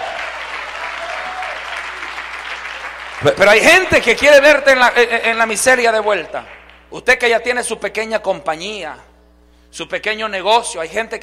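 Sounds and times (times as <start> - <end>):
audience applause: 0.0 - 4.2
speech: 3.2 - 9.1, 9.7 - 11.2.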